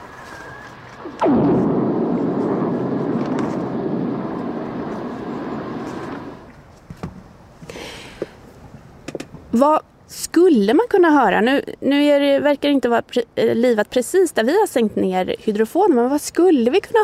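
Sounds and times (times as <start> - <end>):
lightning strike recorded underwater by a hydrophone: 0.0 - 6.5
speech: 9.6 - 17.0.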